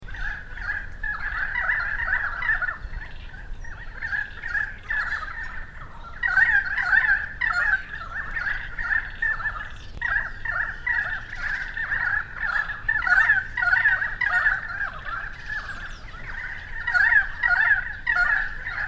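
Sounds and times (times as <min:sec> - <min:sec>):
currawongs giving loud warbling calls: 0:00.0 - 0:18.8.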